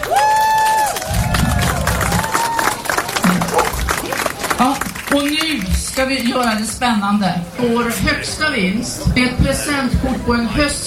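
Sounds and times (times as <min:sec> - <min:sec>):
audience applause: 0:00.0 - 0:06.6
speech: 0:04.6 - 0:10.8.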